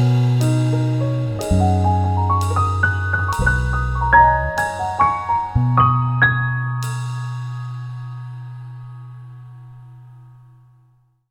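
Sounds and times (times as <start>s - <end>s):
jazz components: 0.0s - 9.0s.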